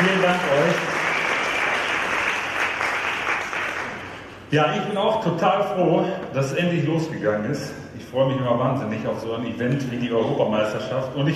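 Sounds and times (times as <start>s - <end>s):
audience applause: 0.0s - 4.4s
speech: 4.5s - 11.3s.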